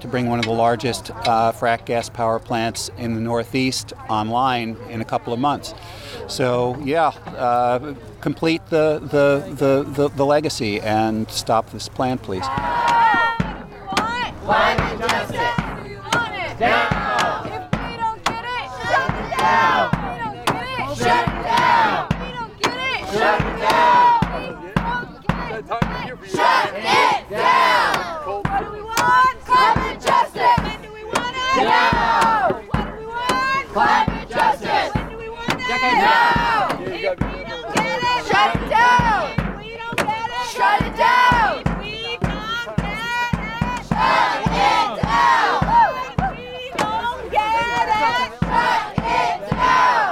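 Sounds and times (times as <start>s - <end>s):
speech: 0.0s - 13.0s, 14.5s - 15.6s
crowd of protesters chanting in unison: 12.4s - 50.0s.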